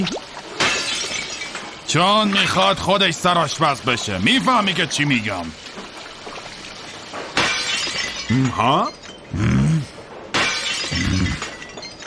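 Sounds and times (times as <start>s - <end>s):
speech: 0.0s - 0.2s, 1.9s - 5.6s, 8.3s - 9.5s
dishes shattering on the floor: 0.6s - 2.6s, 6.7s - 9.2s, 10.2s - 12.0s.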